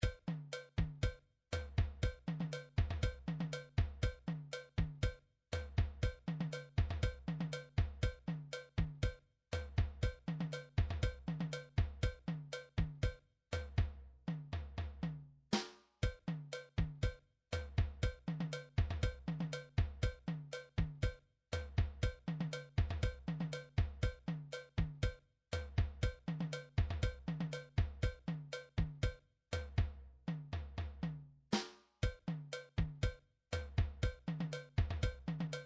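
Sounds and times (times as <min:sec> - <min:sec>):
cha-cha drums: 0:00.0 - 0:35.6.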